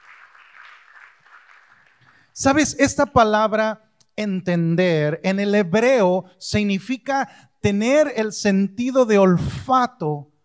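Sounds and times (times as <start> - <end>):
audience applause: 0.0 - 2.4
speech: 2.4 - 10.3.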